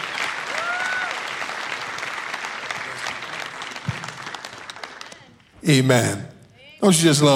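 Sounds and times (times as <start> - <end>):
audience applauding a guest preacher at a church service: 0.0 - 5.6
speech: 5.6 - 7.3.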